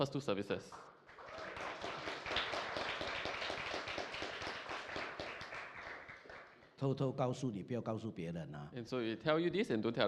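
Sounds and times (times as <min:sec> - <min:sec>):
speech: 0:00.0 - 0:01.0, 0:06.8 - 0:10.0
audience applause: 0:01.1 - 0:06.6.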